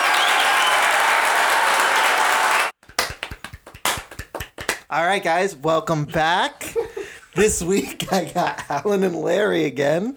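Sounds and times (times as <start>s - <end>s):
applause sound effect: 0.0s - 4.9s
speech: 4.9s - 10.1s
laughter: 6.6s - 9.0s.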